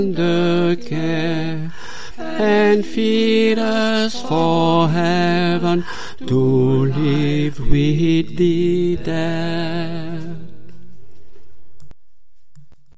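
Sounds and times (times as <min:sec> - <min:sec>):
bass voices singing a chorale carol: 0:00.0 - 0:10.8.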